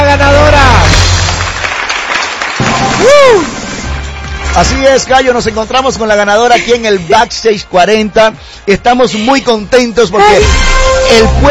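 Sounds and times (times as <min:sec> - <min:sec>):
loud applause: 0:00.7 - 0:05.2
speech: 0:04.6 - 0:11.4.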